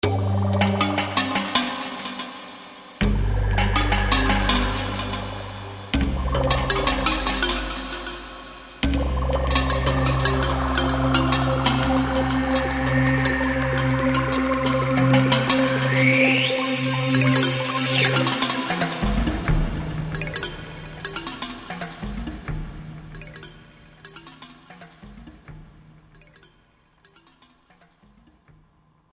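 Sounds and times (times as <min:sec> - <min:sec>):
Roland JD-990 synthesizer: 0:00.0 - 0:26.5.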